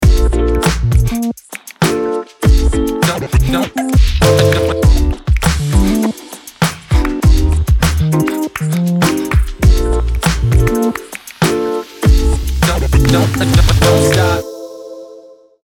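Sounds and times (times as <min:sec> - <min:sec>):
random beat: 0:00.0 - 0:14.5.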